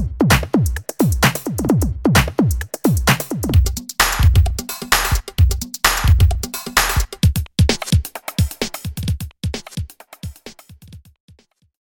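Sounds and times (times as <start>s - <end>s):
electronica music: 0.0s - 9.0s.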